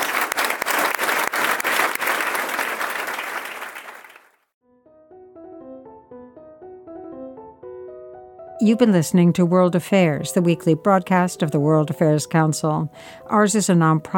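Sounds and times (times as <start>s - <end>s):
audience clapping for a guest speaker at a World Affairs Council event: 0.0s - 4.5s
soft gentle music: 4.6s - 14.1s
speech: 8.6s - 14.1s.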